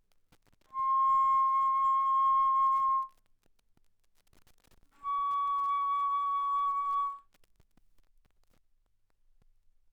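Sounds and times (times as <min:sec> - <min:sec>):
bass flute notes played fortissimo: 0:00.8 - 0:03.1, 0:05.0 - 0:07.2.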